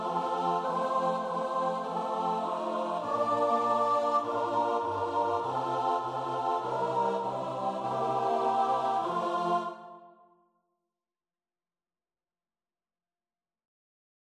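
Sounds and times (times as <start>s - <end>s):
choir singing: 0.0s - 10.3s.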